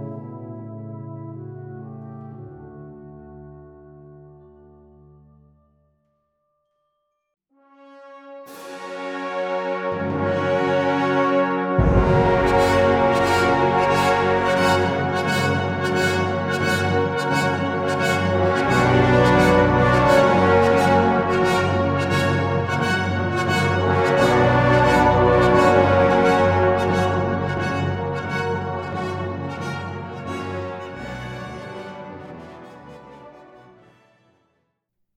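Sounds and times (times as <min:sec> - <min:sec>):
fanfare: 0:08.3 - 0:34.3.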